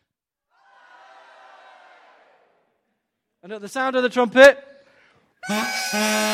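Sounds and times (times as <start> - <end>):
army shouting: 0.6 - 2.5
speech: 3.4 - 4.7, 5.4 - 6.3.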